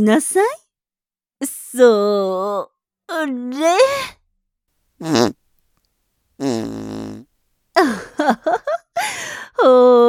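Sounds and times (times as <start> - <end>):
speech: 0.0 - 0.6, 1.4 - 4.2, 5.0 - 5.4, 7.8 - 8.7, 9.6 - 10.0
voice imitating farting: 5.0 - 5.4, 6.4 - 7.3.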